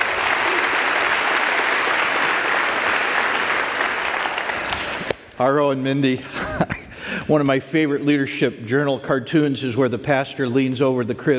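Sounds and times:
audience applause welcoming a speaker: 0.0s - 5.2s
speech: 5.4s - 11.3s.

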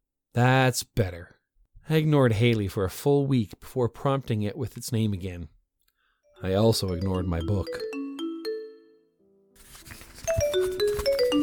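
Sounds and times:
speech: 0.4s - 5.6s, 6.4s - 7.9s
phone ringtone jingle: 6.3s - 9.5s, 10.2s - 11.4s.

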